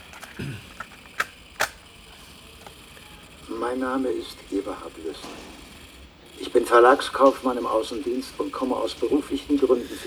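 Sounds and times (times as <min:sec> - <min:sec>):
cassette tape sliding into a player with plastic rattle: 0:00.0 - 0:01.8
speech: 0:00.4 - 0:00.8, 0:03.7 - 0:05.6, 0:06.4 - 0:10.0.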